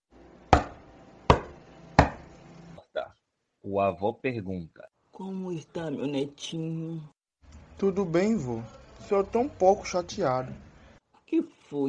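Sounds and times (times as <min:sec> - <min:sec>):
knocking on a door: 0:00.5 - 0:02.3
speech: 0:03.0 - 0:07.2, 0:07.8 - 0:10.7, 0:11.3 - 0:11.8.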